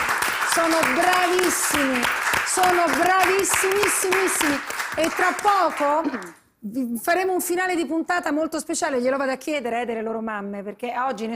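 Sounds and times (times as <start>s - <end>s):
studio audience applause in a television studio: 0.0s - 6.4s
speech: 0.6s - 11.3s.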